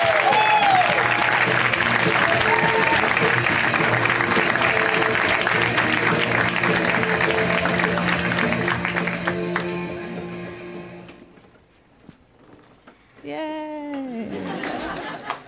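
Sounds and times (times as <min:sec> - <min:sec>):
audience applause welcoming a comedian to the stage: 0:00.0 - 0:09.9
laughter: 0:14.0 - 0:15.4.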